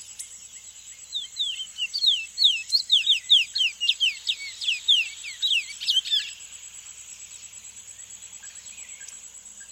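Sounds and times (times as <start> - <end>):
thick-billed seed-finch singing sharply down-slurred whistled notes in South America: 1.1 - 6.3.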